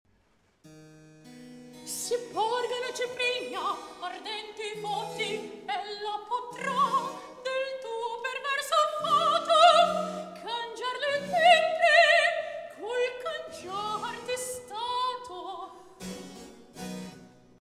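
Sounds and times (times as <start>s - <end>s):
recitative singing: 1.9s - 15.8s.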